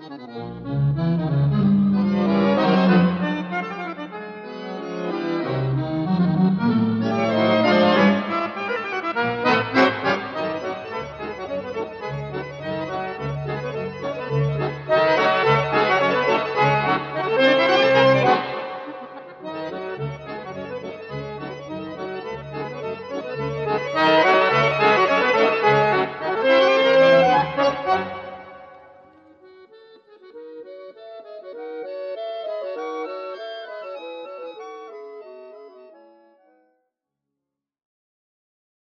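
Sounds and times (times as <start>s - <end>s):
scherzo music: 0.3s - 29.3s.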